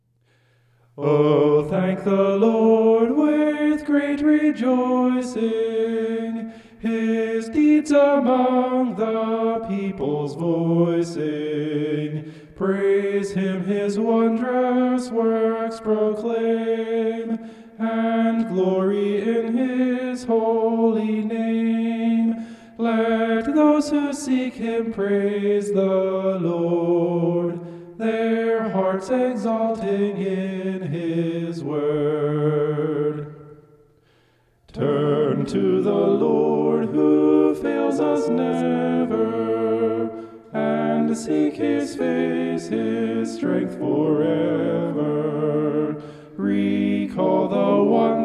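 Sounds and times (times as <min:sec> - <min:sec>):
homophonic vocals: 0:01.0 - 0:33.9, 0:34.7 - 0:48.2.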